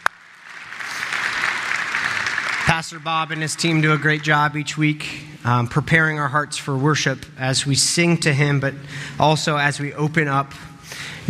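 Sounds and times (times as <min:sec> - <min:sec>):
church congregation applauding the worship team: 0:00.0 - 0:05.0
speech: 0:02.7 - 0:11.2.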